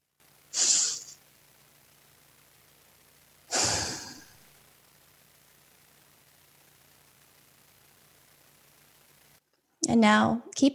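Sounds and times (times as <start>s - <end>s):
deep breaths: 3.5s - 4.4s
speech: 9.9s - 10.7s.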